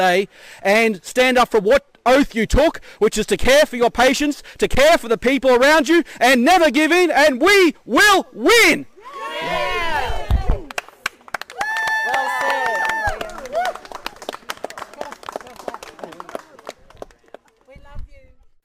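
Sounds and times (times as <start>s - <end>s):
speech: 0.0s - 9.7s
crowd cheering and calling out: 9.0s - 10.7s, 11.5s - 14.2s.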